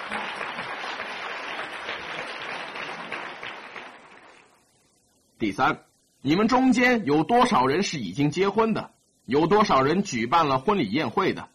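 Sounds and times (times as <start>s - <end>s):
audience applause: 0.0s - 4.6s
speech: 5.4s - 11.5s.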